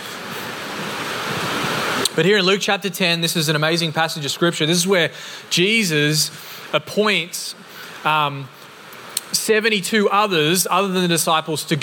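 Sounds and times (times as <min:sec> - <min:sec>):
heavy rain: 0:00.0 - 0:02.1
speech: 0:02.2 - 0:08.6, 0:09.5 - 0:11.8.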